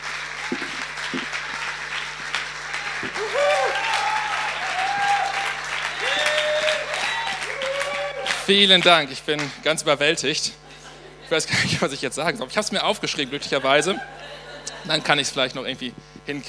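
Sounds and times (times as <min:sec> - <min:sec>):
audience applause: 0:00.0 - 0:09.6
cheers and whoops: 0:02.7 - 0:08.4
speech: 0:08.5 - 0:10.6, 0:11.3 - 0:16.4
laughter: 0:10.6 - 0:15.6.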